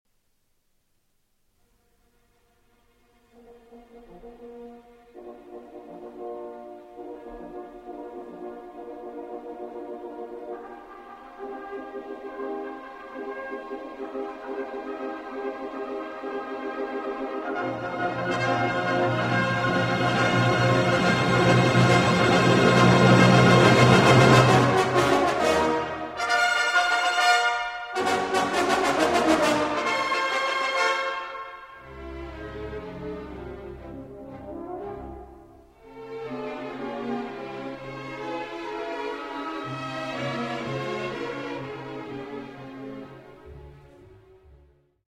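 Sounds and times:
symphonic music in E flat major: 3.1s - 44.9s.

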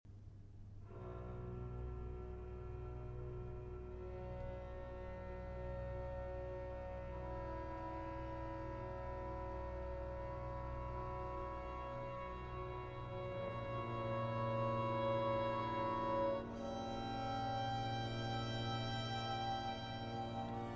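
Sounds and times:
flute concerto in G minor: 0.9s - 20.7s.

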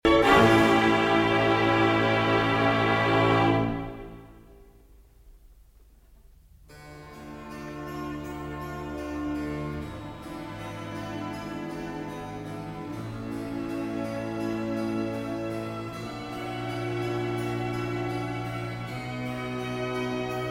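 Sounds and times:
violin concerto in D minor: 0.0s - 4.6s, 7.0s - 20.4s.

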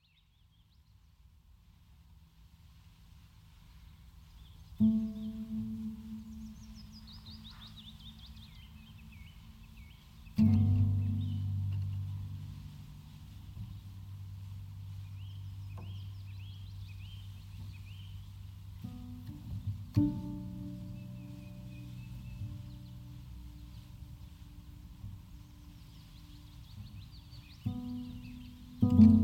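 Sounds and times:
bird whistling song: 4.4s - 12.1s, 15.0s - 19.8s, 20.7s - 24.6s, 25.3s - 29.2s
steady low hum: 4.8s - 29.2s.

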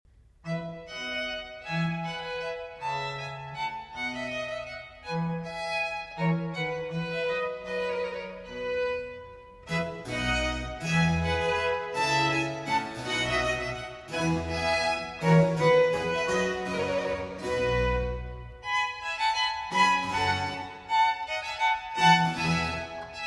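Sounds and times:
concerto in F major for four violins: 0.3s - 23.2s.

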